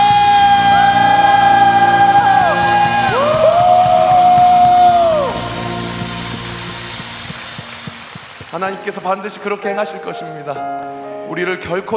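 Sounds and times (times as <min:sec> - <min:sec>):
audience shouting and whooping: 0:00.0 - 0:07.4
audience applauding: 0:00.0 - 0:09.5
speech: 0:08.6 - 0:11.9.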